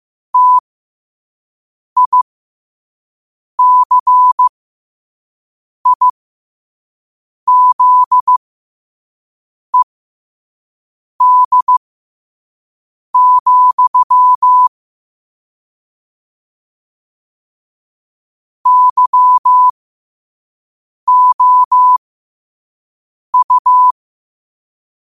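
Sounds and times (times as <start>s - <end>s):
morse code at 5 wpm: 0.4s - 0.6s, 2.0s - 2.2s, 3.6s - 4.5s, 5.9s - 6.1s, 7.5s - 8.4s, 11.2s - 11.8s, 13.2s - 14.7s, 18.6s - 19.7s, 21.1s - 22.0s, 23.4s - 24.0s.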